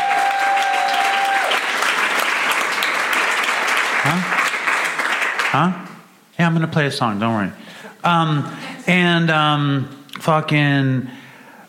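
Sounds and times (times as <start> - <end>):
audience round of applause: 0.0 - 5.7
speech: 4.1 - 4.4, 5.5 - 5.8, 6.4 - 11.2.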